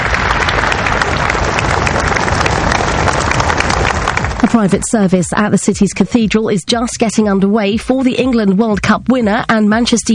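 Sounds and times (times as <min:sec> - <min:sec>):
crowds applauding a passing funeral procession at Old Trafford: 0:00.0 - 0:05.2
speech: 0:04.6 - 0:10.1.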